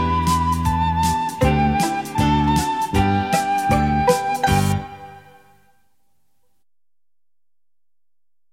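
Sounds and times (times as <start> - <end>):
pizzicato polka: 0.0 - 5.3.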